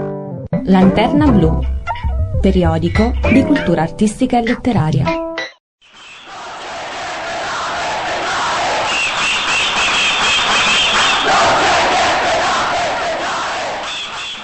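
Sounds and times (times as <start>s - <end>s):
speech: 0.7s - 1.8s, 2.4s - 5.3s
protest crowd shouting and chanting: 6.2s - 14.4s.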